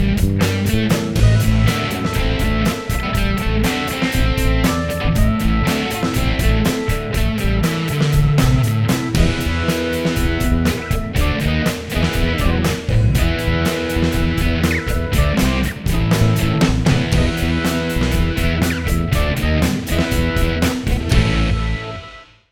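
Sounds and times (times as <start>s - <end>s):
added keys: 0.1s - 22.3s.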